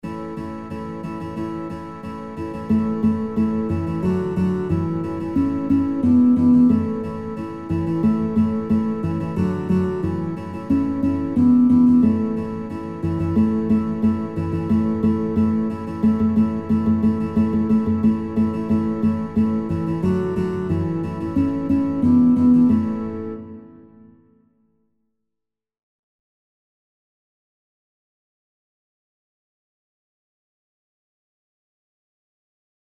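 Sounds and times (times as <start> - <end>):
guitar playing children's songs: 0.0 - 24.3.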